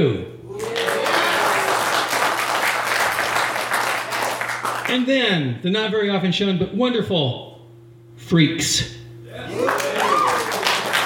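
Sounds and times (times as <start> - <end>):
audience applause: 0.6 - 4.9, 9.4 - 11.0
speech: 4.9 - 7.5, 8.3 - 9.9.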